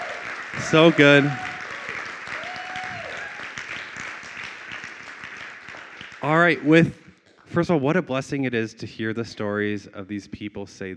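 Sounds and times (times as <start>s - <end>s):
audience applause: 0.0s - 7.0s
speech: 0.6s - 1.4s, 6.2s - 10.9s.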